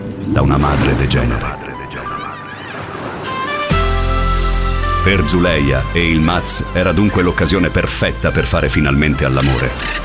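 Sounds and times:
ocean waves: 0:00.0 - 0:10.0
speech: 0:00.3 - 0:01.6, 0:05.0 - 0:10.0.

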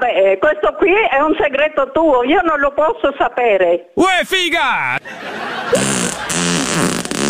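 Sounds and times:
speech: 0:00.0 - 0:07.1
laughter: 0:04.8 - 0:06.4
fart: 0:05.7 - 0:07.2.

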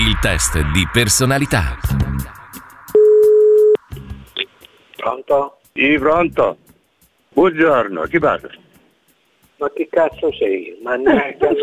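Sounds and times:
speech: 0:00.2 - 0:02.3, 0:05.0 - 0:06.6, 0:07.4 - 0:08.6, 0:09.6 - 0:11.6
telephone line tone while placing a phone call: 0:03.0 - 0:03.8.

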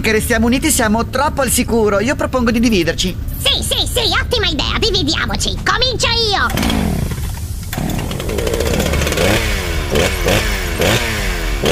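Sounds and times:
speech: 0:00.0 - 0:07.1
chainsaw starting and revving: 0:06.5 - 0:11.7.

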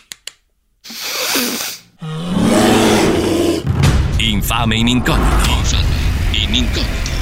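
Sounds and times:
speech: 0:01.4 - 0:02.3, 0:04.2 - 0:07.1
bear roaring: 0:02.0 - 0:03.7.

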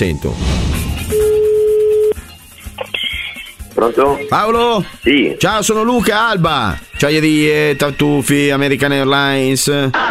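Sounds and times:
speech: 0:00.0 - 0:00.8, 0:03.8 - 0:10.0
telephone ringing tone while placing a call: 0:01.1 - 0:02.2.

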